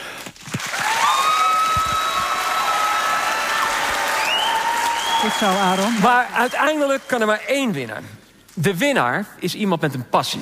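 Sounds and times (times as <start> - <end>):
big round of applause: 0.6 - 7.5
speech: 5.2 - 10.4.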